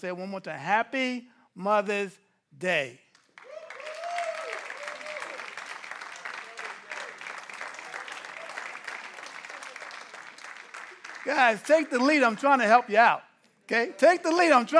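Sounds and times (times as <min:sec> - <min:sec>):
speech: 0:00.0 - 0:03.0, 0:11.2 - 0:14.7
audience clapping: 0:03.1 - 0:12.8.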